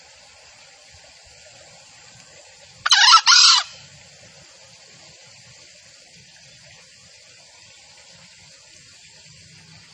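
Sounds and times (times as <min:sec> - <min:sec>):
junglefowl two-part harmonic squawk: 0:02.9 - 0:03.8.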